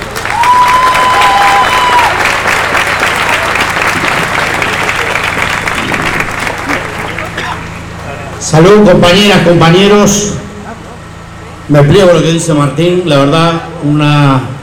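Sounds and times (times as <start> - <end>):
applause: 0.0 - 8.2
speech: 8.5 - 10.4, 11.7 - 14.6.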